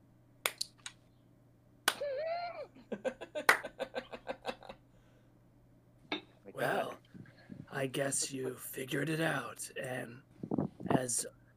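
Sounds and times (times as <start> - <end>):
slow hand clapping: 1.9 - 2.1, 3.4 - 3.8
laughter: 2.0 - 4.8
speech: 7.8 - 10.3, 10.9 - 11.4.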